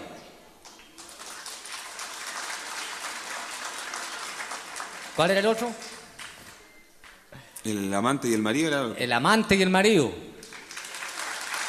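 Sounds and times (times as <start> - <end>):
audience applause at a Chilean payadores performance: 0.9 - 6.4, 10.4 - 11.6
speech: 5.2 - 6.0, 7.6 - 10.3.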